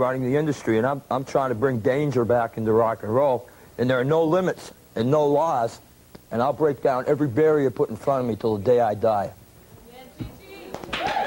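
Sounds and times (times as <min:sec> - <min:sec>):
speech: 0:00.0 - 0:09.4
audience applause: 0:10.8 - 0:11.2.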